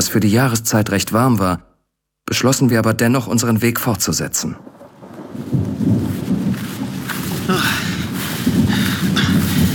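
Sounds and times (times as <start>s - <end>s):
speech: 0.1s - 1.7s, 2.3s - 4.7s, 5.4s - 6.0s, 7.5s - 7.9s
rain: 3.4s - 9.7s
thunder: 4.6s - 9.7s.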